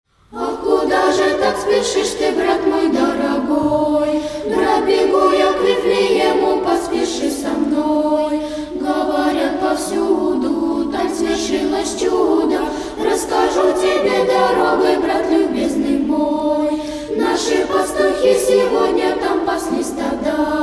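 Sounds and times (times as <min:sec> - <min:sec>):
Russian Christmas carols: 0:00.1 - 0:20.6.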